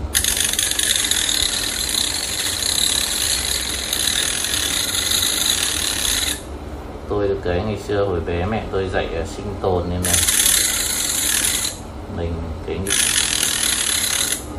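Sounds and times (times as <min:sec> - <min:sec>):
mini handheld saw cutting: 0:00.1 - 0:06.5, 0:10.1 - 0:11.8, 0:12.9 - 0:14.5
speech: 0:07.4 - 0:10.3, 0:12.2 - 0:13.1.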